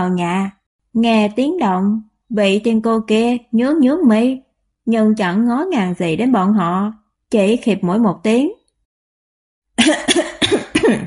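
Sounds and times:
speech: 0.0 - 8.6, 9.8 - 11.0
person coughing to cover up laughter: 9.8 - 11.0.

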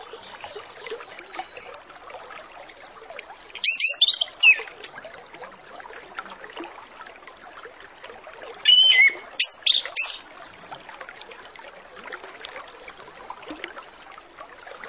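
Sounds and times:
Orange-headed Thrush whistling song: 3.6 - 4.7, 8.6 - 10.2.

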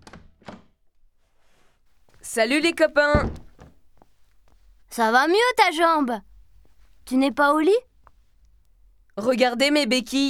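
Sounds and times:
speech: 2.3 - 3.4, 5.0 - 6.3, 7.1 - 7.9, 9.2 - 10.2
knocking on a door: 2.8 - 3.8.

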